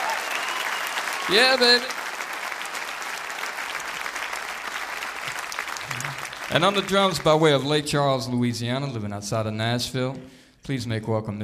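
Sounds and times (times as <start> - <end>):
audience applause at a live concert for the bass player: 0.0 - 7.8
speech: 1.3 - 2.0, 6.5 - 11.4.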